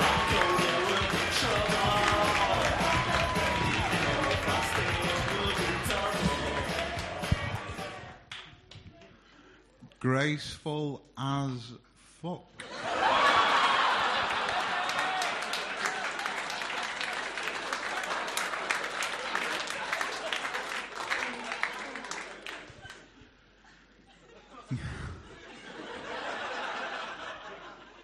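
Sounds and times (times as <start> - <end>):
audience applause at a comedy show: 0.0 - 8.1, 12.6 - 23.2
speech: 10.1 - 12.6
audience laughter: 12.6 - 16.7, 17.4 - 28.0.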